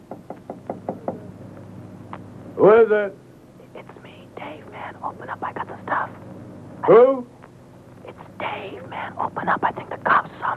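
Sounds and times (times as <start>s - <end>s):
knocking on a door in a comedy sketch: 0.0s - 1.3s
speech: 2.6s - 3.2s, 6.8s - 7.3s, 8.6s - 10.5s.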